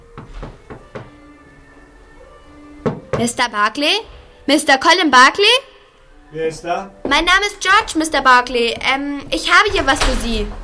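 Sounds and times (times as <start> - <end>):
knocking on a hotel room door: 0.2 - 1.3, 2.8 - 3.4
speech: 3.2 - 5.7, 6.3 - 10.6.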